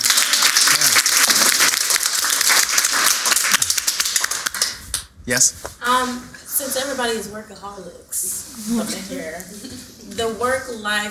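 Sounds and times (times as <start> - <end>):
audience applause: 0.0 - 4.8
speech: 5.3 - 11.1.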